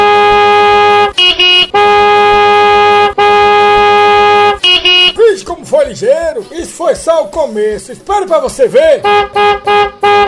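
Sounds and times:
passing vehicle horn honking: 0:00.0 - 0:05.2, 0:09.0 - 0:10.2
speech: 0:07.3 - 0:09.4.

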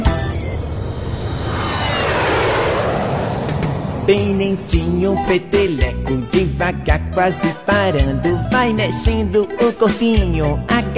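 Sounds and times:
airplane taking off as a sound effect in a children's dance song: 0:00.0 - 0:06.6
speech: 0:04.1 - 0:10.9.

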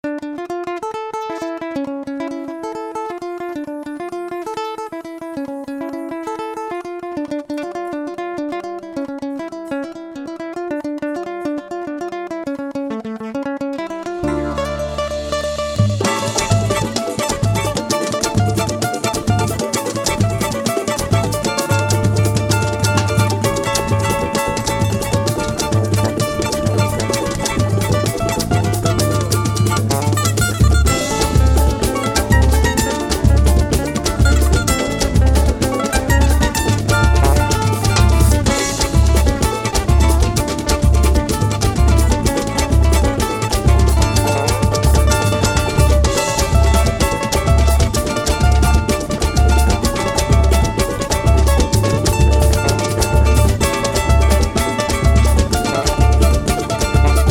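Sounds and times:
instrumental music: 0:00.0 - 0:57.2.

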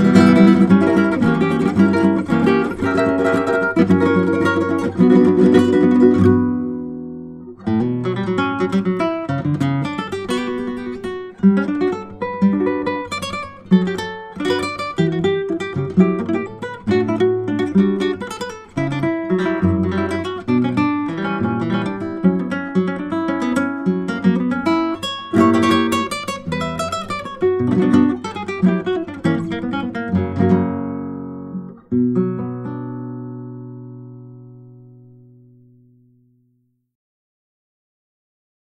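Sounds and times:
instrumental music: 0:00.0 - 0:36.9.

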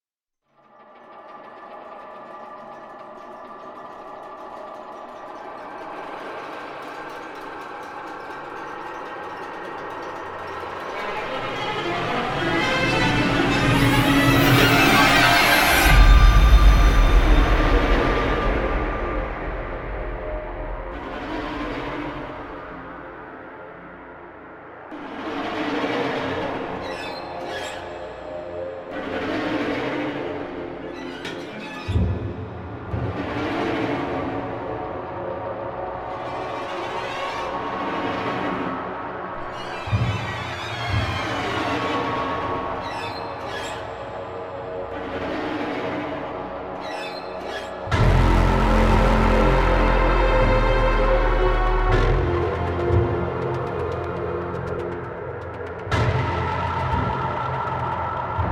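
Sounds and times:
epic atmospheric horror trailer music: 0:00.5 - 0:58.5.

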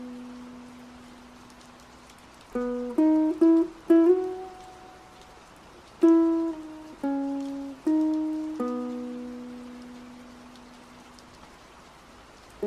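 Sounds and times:
rain at Dongmak Beach: 0:00.0 - 0:12.6
ukulele at Dongmak Beach: 0:02.6 - 0:05.2, 0:05.9 - 0:10.4.

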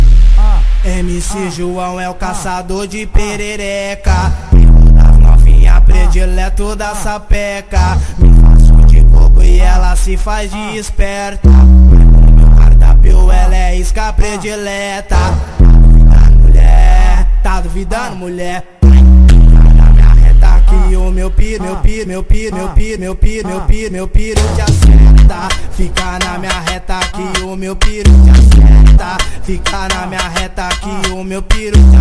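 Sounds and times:
deep bass: 0:00.0 - 0:01.5, 0:04.1 - 0:06.8, 0:07.8 - 0:10.6, 0:11.4 - 0:14.2, 0:15.1 - 0:18.0, 0:18.8 - 0:27.1, 0:27.8 - 0:31.9.

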